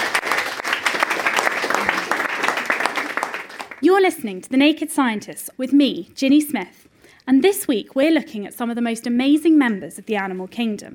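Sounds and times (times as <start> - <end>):
audience applause: 0.0 - 3.8
speech: 3.9 - 10.9.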